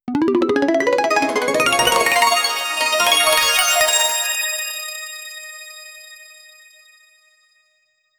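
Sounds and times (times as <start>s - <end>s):
arpeggio: 0.1s - 4.8s.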